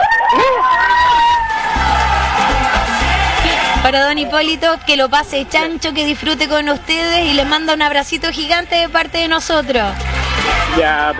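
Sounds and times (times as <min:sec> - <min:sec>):
group shouting a cheer: 0:00.0 - 0:04.6
rumbling crowd-like background: 0:00.0 - 0:10.9
speech: 0:03.9 - 0:11.1.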